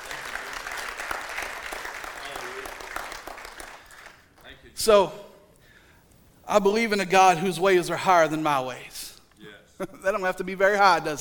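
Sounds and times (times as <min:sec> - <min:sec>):
church congregation applauding: 0:00.0 - 0:04.7
speech: 0:04.8 - 0:05.2, 0:06.5 - 0:08.9, 0:09.8 - 0:11.1.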